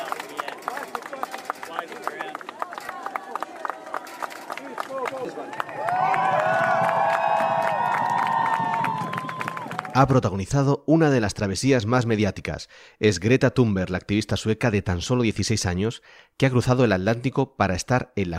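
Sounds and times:
applause as an ovation: 0:00.0 - 0:10.2
speech: 0:10.0 - 0:18.3.

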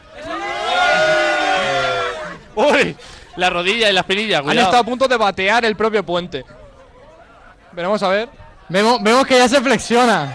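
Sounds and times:
people shouting: 0:00.0 - 0:02.9, 0:08.7 - 0:10.3
speech: 0:02.6 - 0:06.6, 0:07.7 - 0:10.3.

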